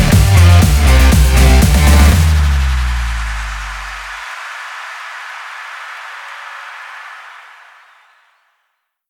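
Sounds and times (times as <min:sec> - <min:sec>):
stock music: 0:00.0 - 0:04.3.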